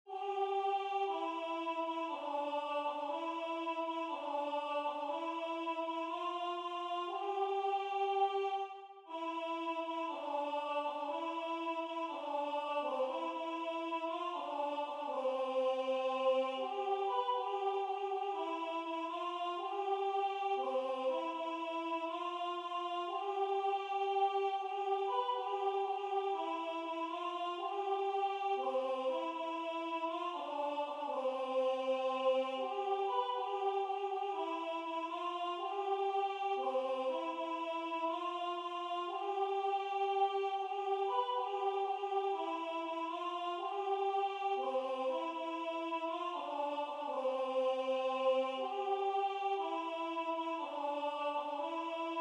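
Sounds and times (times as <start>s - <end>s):
soprano singing: 0.0s - 52.1s.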